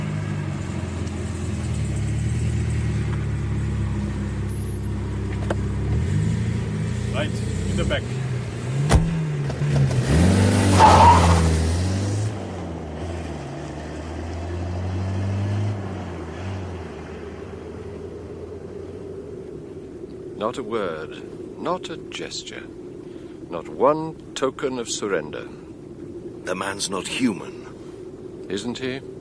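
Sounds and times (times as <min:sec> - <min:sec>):
car driving up and engine revving: 0:00.0 - 0:20.4
speech: 0:07.2 - 0:08.2, 0:20.5 - 0:22.8, 0:23.5 - 0:25.6, 0:26.4 - 0:27.6, 0:28.5 - 0:29.1.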